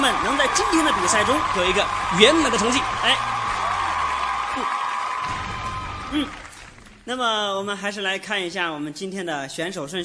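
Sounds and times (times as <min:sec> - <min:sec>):
audience applause: 0:00.0 - 0:07.1
speech: 0:00.1 - 0:03.4, 0:06.1 - 0:06.4, 0:07.1 - 0:10.0.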